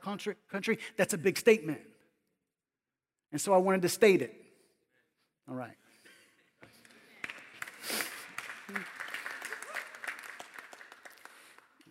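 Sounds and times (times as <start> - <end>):
speech: 0.0 - 1.9, 3.3 - 4.4, 5.5 - 5.8
audience clapping: 6.7 - 11.8.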